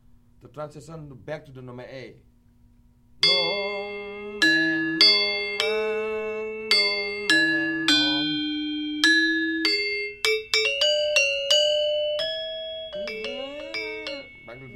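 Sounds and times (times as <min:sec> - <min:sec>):
gamelan lengker transition polos: 0:03.2 - 0:14.7.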